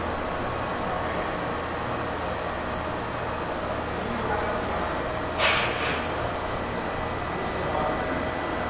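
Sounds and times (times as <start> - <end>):
heavy machine hum in an industrial workshop factory: 0.0 - 8.6.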